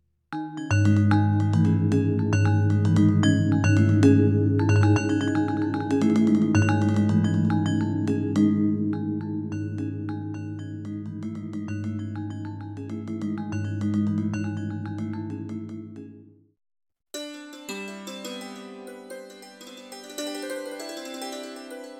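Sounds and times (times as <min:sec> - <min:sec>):
Roland SPD-20 Pro Indian percussion kit: 0:00.4 - 0:16.2.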